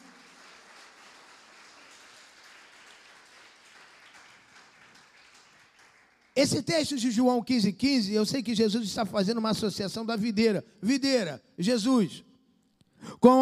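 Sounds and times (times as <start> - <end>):
audience applauding: 0.0 - 6.4
speech: 6.4 - 12.3, 13.0 - 13.4.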